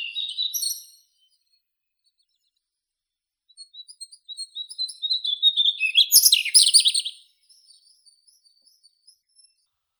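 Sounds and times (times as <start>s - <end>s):
mugimaki flycatcher Ficedula mugimaki: 0.1s - 0.9s, 5.5s - 7.1s.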